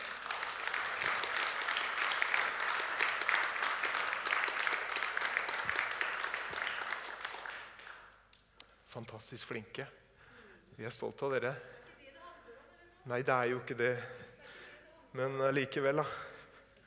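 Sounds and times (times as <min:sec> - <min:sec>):
audience applause for singers: 0:00.0 - 0:08.1
speech: 0:09.0 - 0:10.0, 0:10.8 - 0:11.8, 0:13.0 - 0:14.2, 0:15.1 - 0:16.3.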